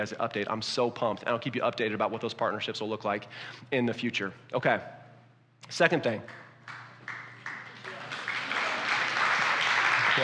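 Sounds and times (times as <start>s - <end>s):
speech: 0.0s - 5.0s, 5.6s - 6.8s
person slow clapping: 6.3s - 10.2s.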